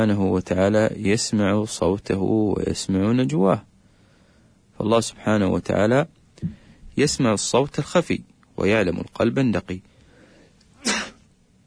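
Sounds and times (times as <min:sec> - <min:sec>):
speech: 0:00.0 - 0:03.7, 0:04.8 - 0:09.9
person sneezing: 0:10.8 - 0:11.3.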